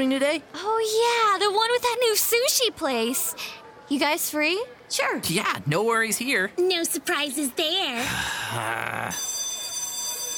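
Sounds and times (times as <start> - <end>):
speech: 0.0 - 9.3
school warning bell ringing: 9.1 - 10.3.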